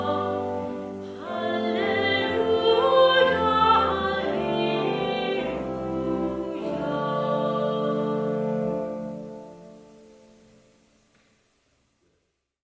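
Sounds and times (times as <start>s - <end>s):
singing: 0.0s - 8.8s.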